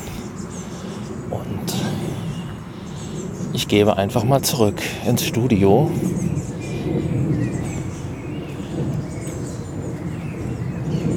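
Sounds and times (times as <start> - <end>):
airplane passing over: 0.0 - 11.1
outdoor nature ambience: 0.0 - 11.1
speech: 1.3 - 2.2, 3.5 - 6.3.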